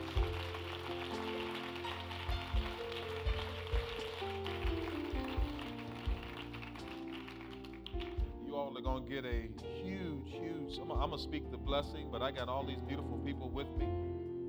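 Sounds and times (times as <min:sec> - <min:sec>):
crowd clapping hands: 0:00.0 - 0:08.6
regular low thumping beat: 0:00.0 - 0:14.4
sustained music: 0:00.0 - 0:14.4
speech: 0:08.8 - 0:14.0.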